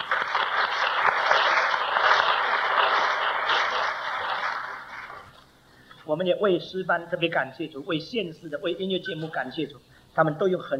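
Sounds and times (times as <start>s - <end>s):
audience applause: 0.0s - 5.4s
speech: 6.1s - 10.7s.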